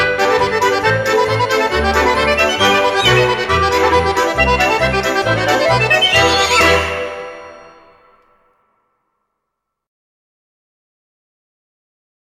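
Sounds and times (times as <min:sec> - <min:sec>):
circle polka folk dance music: 0:00.0 - 0:07.9.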